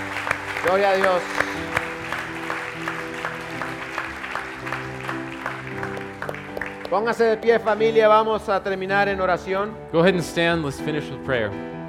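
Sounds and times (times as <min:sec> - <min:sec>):
church congregation clapping in time: 0:00.0 - 0:08.2
speech: 0:00.6 - 0:01.8, 0:06.9 - 0:11.7.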